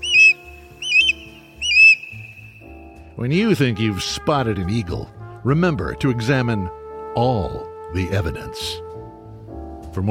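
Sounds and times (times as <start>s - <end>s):
osprey whistled calls: 0.0s - 2.8s
speech: 3.2s - 8.8s.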